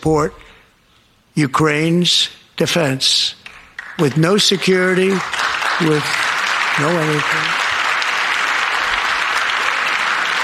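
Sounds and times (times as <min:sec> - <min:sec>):
speech: 0:00.0 - 0:00.5, 0:01.4 - 0:03.4, 0:04.0 - 0:07.6
audience applause: 0:03.5 - 0:10.4.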